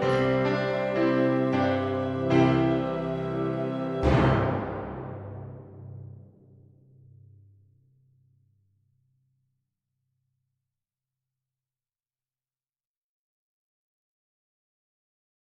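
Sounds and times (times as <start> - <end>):
people singing hallelujah at a children's mass: 0.0 - 4.7.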